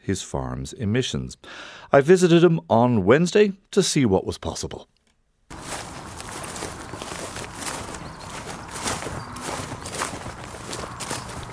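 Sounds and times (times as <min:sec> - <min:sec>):
speech: 0:00.0 - 0:05.0
footsteps walking across a newly reseeded multi-species farm sward: 0:05.5 - 0:11.5.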